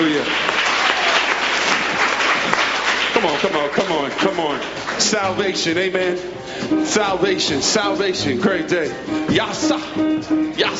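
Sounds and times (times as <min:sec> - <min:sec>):
audience clapping: 0:00.0 - 0:06.1
speech: 0:03.3 - 0:10.7.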